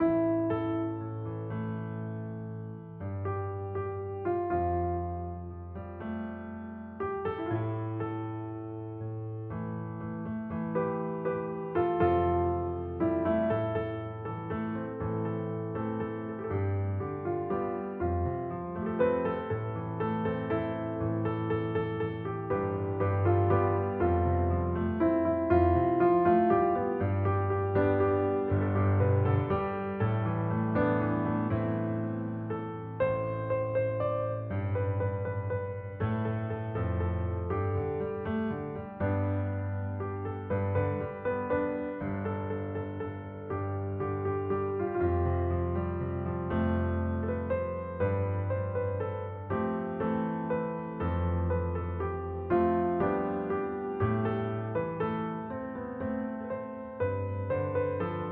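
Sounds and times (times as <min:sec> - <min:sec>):
piano: 0:00.0 - 0:58.3.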